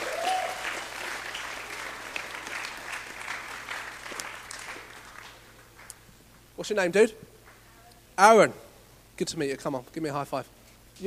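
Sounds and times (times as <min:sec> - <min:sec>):
audience applause: 0:00.0 - 0:05.9
speech: 0:06.6 - 0:07.3, 0:08.2 - 0:08.6, 0:09.2 - 0:11.0.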